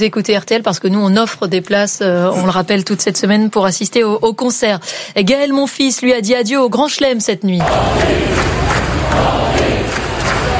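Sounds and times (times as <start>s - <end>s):
speech: 0.0s - 10.5s
crowd roaring at a night tennis match at the US Open: 7.6s - 10.5s.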